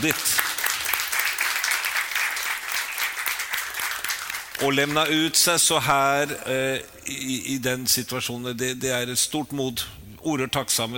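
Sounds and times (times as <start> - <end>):
speech: 0.0 - 0.4, 4.6 - 10.9
audience clapping: 0.0 - 6.0.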